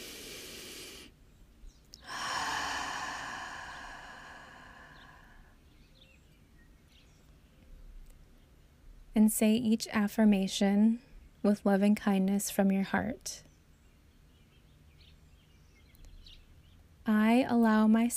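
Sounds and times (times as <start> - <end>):
deep breath in through the nose and out the mouth during guided breathwork meditation: 0.0 - 1.2, 2.0 - 5.6
speech: 9.2 - 13.5, 17.0 - 18.1.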